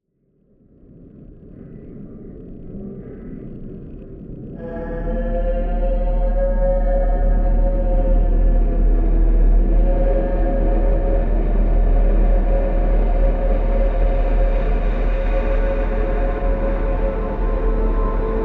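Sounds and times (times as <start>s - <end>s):
horror tension music: 4.5s - 18.4s.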